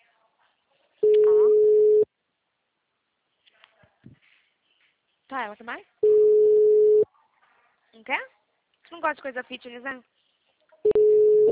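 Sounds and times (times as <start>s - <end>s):
ringback tone of an unanswered telephone call: 1.0s - 2.0s, 6.0s - 7.0s, 10.9s - 11.5s
speech: 5.3s - 6.0s, 8.0s - 10.1s.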